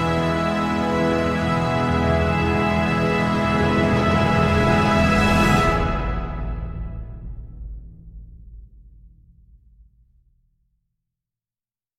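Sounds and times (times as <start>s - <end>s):
instrumental music: 0.0s - 7.4s.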